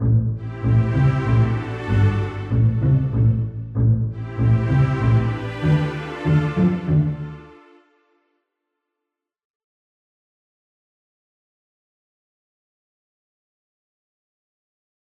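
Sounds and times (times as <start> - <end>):
string music: 0.0 - 8.3.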